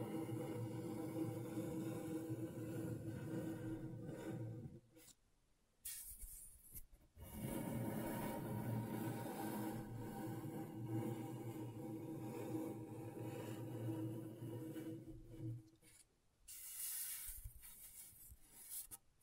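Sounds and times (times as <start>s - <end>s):
scratching on a scratchboard: 0.0s - 4.8s, 7.2s - 18.8s.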